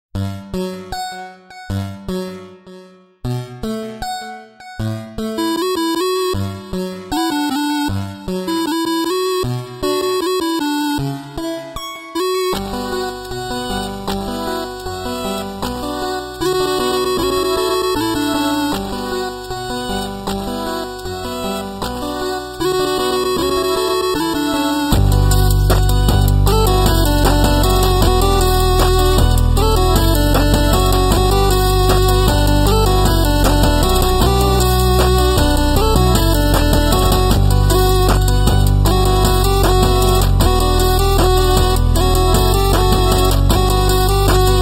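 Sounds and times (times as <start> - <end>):
8-bit mobile phone ringtone music: 0.2 - 44.6.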